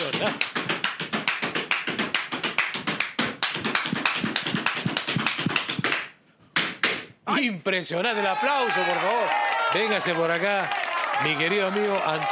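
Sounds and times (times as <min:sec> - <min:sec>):
zapateado tap dancing footwork: 0:00.0 - 0:07.1
speech: 0:00.2 - 0:00.6, 0:07.4 - 0:12.2.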